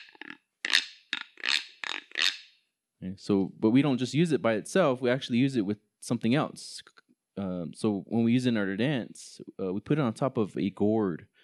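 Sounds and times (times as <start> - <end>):
notched stick rasp scraped with deer bone: 0.0 - 2.4
speech: 3.0 - 11.3.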